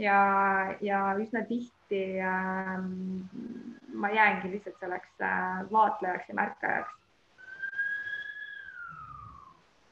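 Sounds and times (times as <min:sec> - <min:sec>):
speech: 0:00.0 - 0:07.0
ambulance siren passing by: 0:07.5 - 0:09.6.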